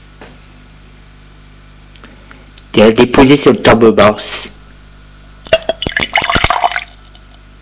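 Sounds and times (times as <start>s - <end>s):
speech: 2.8s - 4.6s
wine poured from a bottle into glasses: 5.5s - 7.1s.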